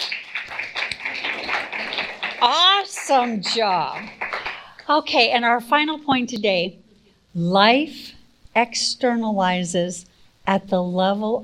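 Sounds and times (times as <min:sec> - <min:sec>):
crowd applauding: 0:00.0 - 0:04.8
speech: 0:02.4 - 0:04.2, 0:04.9 - 0:06.8, 0:07.4 - 0:11.4.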